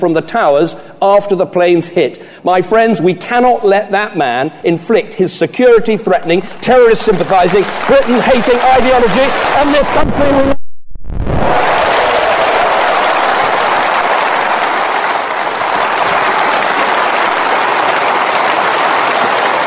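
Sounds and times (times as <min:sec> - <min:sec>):
speech: 0:00.0 - 0:10.6
conference audience rapturous applause: 0:07.1 - 0:10.4, 0:11.3 - 0:19.6.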